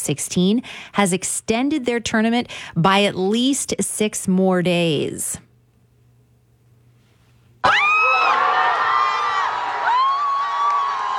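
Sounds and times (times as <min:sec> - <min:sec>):
speech: 0:00.0 - 0:05.4, 0:07.6 - 0:07.9
fans cheering and screaming on Granville Street as Canada scores: 0:07.6 - 0:11.1.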